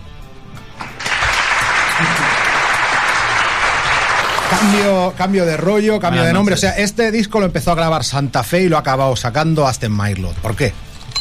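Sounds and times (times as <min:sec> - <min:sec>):
applause: 0:00.8 - 0:05.0
speech: 0:04.5 - 0:10.9.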